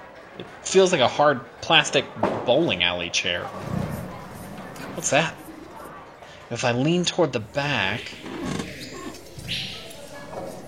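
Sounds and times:
speech: 0:00.4 - 0:03.8, 0:05.0 - 0:05.4, 0:06.5 - 0:08.6
wild animals roaring and growling: 0:07.5 - 0:10.1.

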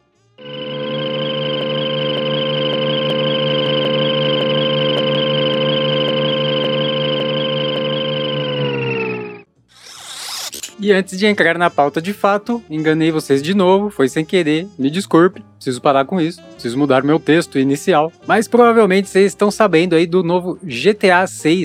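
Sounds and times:
cartoon spaceship flying sound effect: 0:00.4 - 0:10.8
speech: 0:10.9 - 0:21.6.

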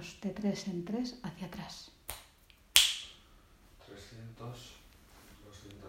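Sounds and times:
speech: 0:00.0 - 0:02.0, 0:04.1 - 0:04.8
finger snap: 0:02.1 - 0:03.2.

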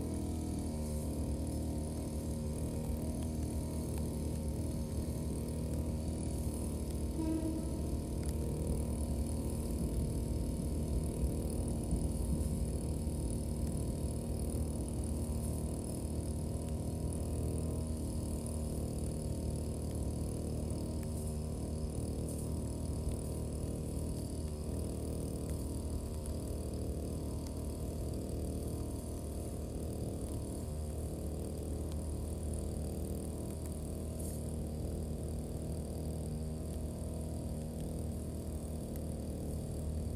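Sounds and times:
brush cutter cutting grass along rows of green onions: 0:00.0 - 0:40.1.

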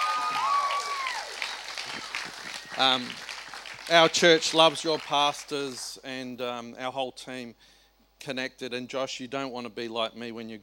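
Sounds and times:
applause: 0:00.0 - 0:06.0
speech: 0:02.8 - 0:03.2, 0:03.9 - 0:10.6.

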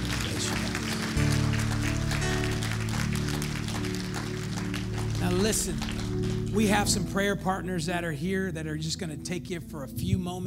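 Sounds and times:
crowd clapping in praise: 0:00.0 - 0:07.0
deep droning bass and organ-like chord: 0:00.0 - 0:10.4
speech: 0:05.4 - 0:06.0, 0:06.6 - 0:10.4.

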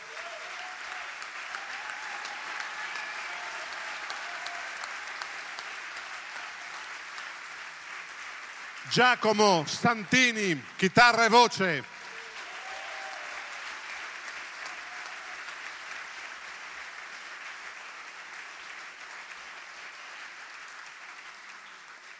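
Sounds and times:
theatre audience applause: 0:00.0 - 0:22.1
speech: 0:08.9 - 0:11.9.

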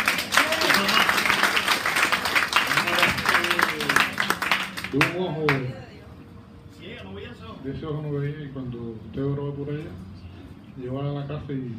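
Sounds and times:
audience applause: 0:00.0 - 0:05.7
speech: 0:07.6 - 0:10.2, 0:10.8 - 0:11.7.

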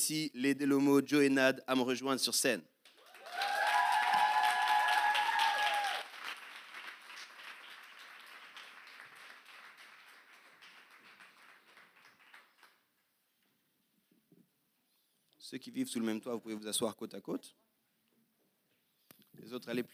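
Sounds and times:
speech: 0:00.1 - 0:02.7, 0:15.5 - 0:17.8, 0:19.4 - 0:19.9
crowd applauding: 0:02.9 - 0:12.9
crowd cheering: 0:03.0 - 0:09.4.

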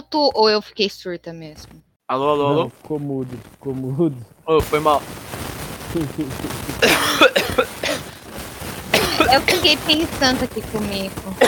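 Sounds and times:
speech: 0:00.1 - 0:05.4, 0:06.0 - 0:07.6, 0:09.3 - 0:11.4
low voice murmur: 0:02.1 - 0:05.0, 0:06.0 - 0:07.0
harsh rasping coughs: 0:06.8 - 0:08.2, 0:08.9 - 0:09.7.

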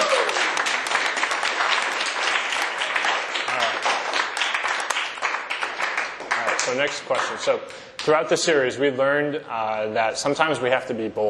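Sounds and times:
audience applause: 0:00.0 - 0:07.5
speech: 0:06.7 - 0:11.2.

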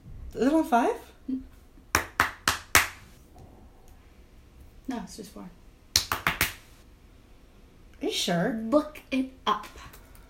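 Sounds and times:
speech: 0:00.3 - 0:01.5, 0:04.9 - 0:05.6, 0:08.0 - 0:09.9
hand claps clapping along to a theme song: 0:01.9 - 0:03.0, 0:06.0 - 0:06.7.

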